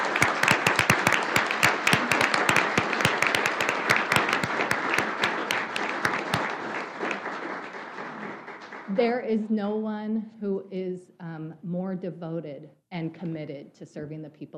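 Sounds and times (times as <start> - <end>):
audience clapping: 0.0 - 9.2
speech: 9.0 - 14.5.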